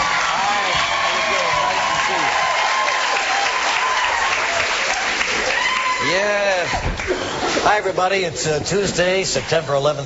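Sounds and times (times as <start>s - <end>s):
television studio audience standing ovation applause: 0.0s - 7.6s
speech: 7.1s - 10.0s.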